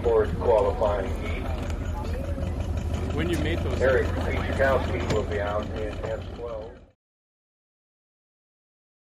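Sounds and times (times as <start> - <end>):
motorboats at a boat race pit: 0.0 - 7.0.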